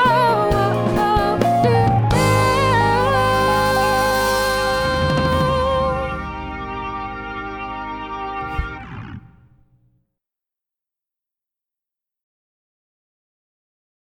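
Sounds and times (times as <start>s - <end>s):
variety band playing: 0.0s - 9.6s.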